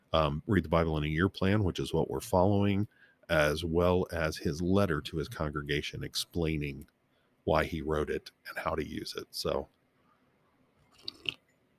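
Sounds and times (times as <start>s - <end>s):
speech: 0.1s - 9.8s
person slurping coffee: 10.9s - 11.4s.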